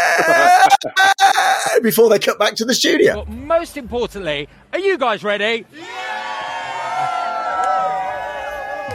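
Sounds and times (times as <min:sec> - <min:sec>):
speech: 0:00.2 - 0:06.0
studio audience cheering: 0:05.7 - 0:08.9.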